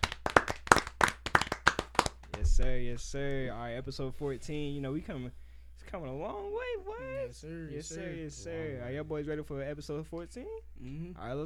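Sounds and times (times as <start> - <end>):
people clapping: 0.0 - 2.6
speech: 2.6 - 11.4.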